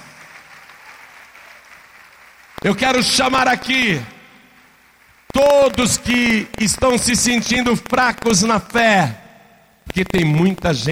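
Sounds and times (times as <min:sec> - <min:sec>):
congregation applause during a church service: 0:00.0 - 0:08.1
speech: 0:02.6 - 0:04.2, 0:05.4 - 0:09.2, 0:09.9 - 0:10.9.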